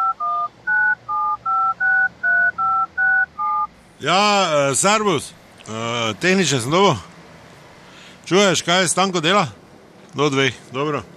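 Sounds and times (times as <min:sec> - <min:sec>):
touch-tone beeps of a telephone number being dialed: 0:00.0 - 0:03.7
speech: 0:04.0 - 0:07.1, 0:08.3 - 0:11.1.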